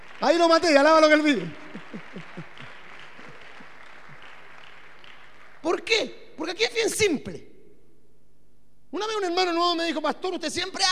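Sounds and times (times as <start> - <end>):
audience applause: 0.0 - 5.6
speech: 0.2 - 1.7, 5.6 - 7.5, 8.9 - 10.9
laughter: 1.6 - 3.7.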